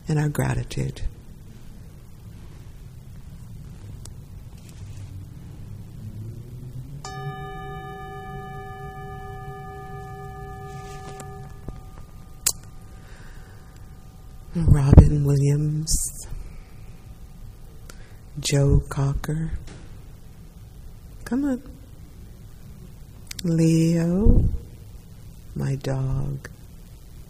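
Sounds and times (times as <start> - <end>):
speech: 0.1 - 1.2, 18.5 - 19.7, 21.3 - 21.8, 23.4 - 24.6, 25.6 - 26.5
bell ringing: 7.0 - 16.2.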